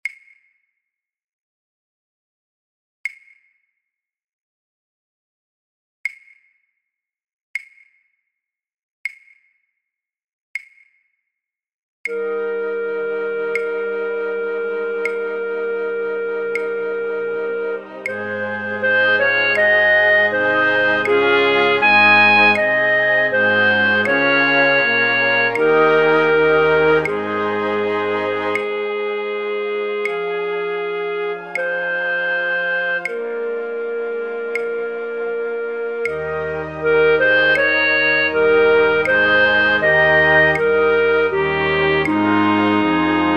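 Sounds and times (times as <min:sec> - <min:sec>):
flute orchestra playing: 0:12.1 - 0:43.3.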